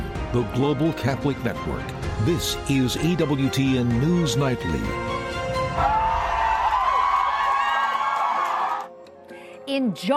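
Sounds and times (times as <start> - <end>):
speech: 0.3 - 5.2, 9.8 - 10.1
crowds of supporters in Ohio cheering: 5.6 - 9.0.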